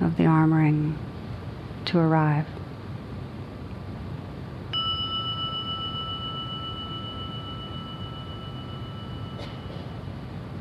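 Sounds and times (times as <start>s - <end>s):
speech: 0.2s - 1.1s, 1.9s - 2.6s
gong struck and ringing: 4.7s - 10.5s.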